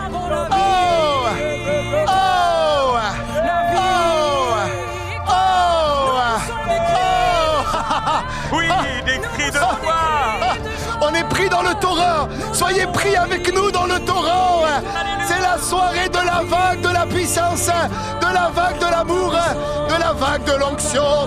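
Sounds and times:
crowd shouting and crying out: 0.0s - 21.2s
laughter: 0.4s - 13.6s
speech: 11.1s - 21.2s.

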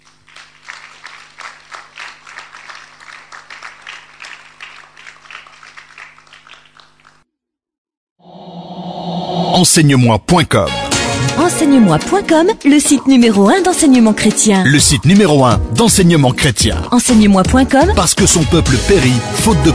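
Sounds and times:
Christian congregation clapping: 0.0s - 7.2s
speech: 9.6s - 19.7s.

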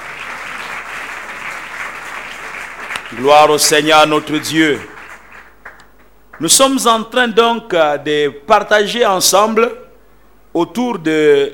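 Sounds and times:
church congregation applauding in acclaim of the word of God: 0.0s - 6.8s
speech: 3.1s - 5.0s, 6.4s - 9.8s, 10.6s - 11.5s.

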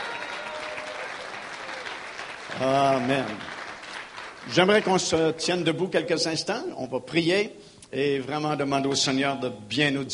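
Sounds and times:
church congregation applauding during a service: 0.0s - 5.4s
speech: 2.6s - 3.6s, 4.4s - 10.1s.

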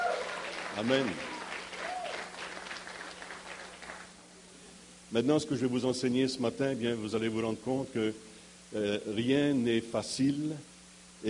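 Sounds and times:
audience applauding: 0.0s - 4.2s
speech: 0.8s - 1.3s, 5.1s - 11.2s.

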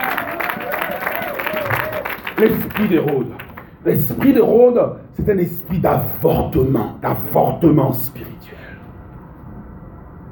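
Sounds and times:
audience applauding: 0.0s - 3.8s
speech: 2.4s - 8.3s.

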